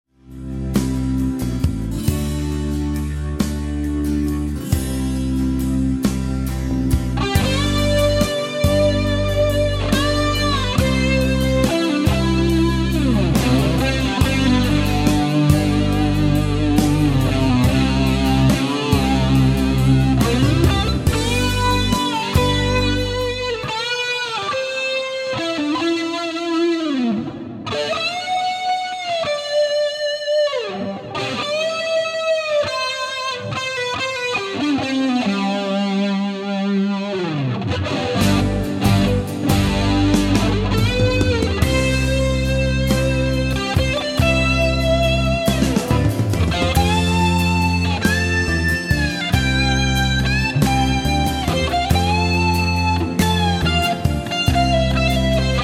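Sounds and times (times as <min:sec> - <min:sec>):
solo through EHX Big Muff: 0:00.2 - 0:55.6.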